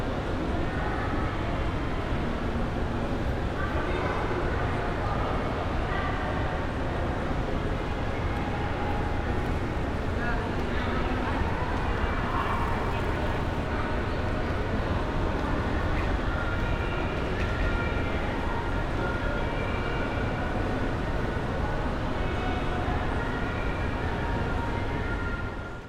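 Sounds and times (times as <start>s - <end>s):
shopping mall crowd activity in Manila: 0.0s - 25.8s.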